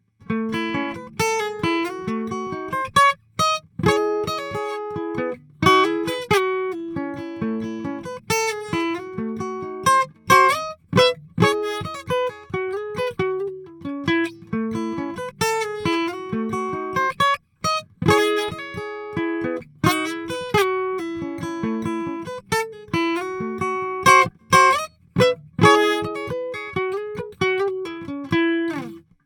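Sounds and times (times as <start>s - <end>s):
Taylor 314ce guitars recorded with Soundelux E47: 0.1s - 29.2s.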